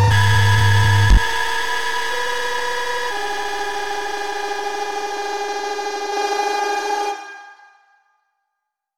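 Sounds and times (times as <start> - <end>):
single-cycle 1 kHz sine wave tone: 0.1 - 7.2.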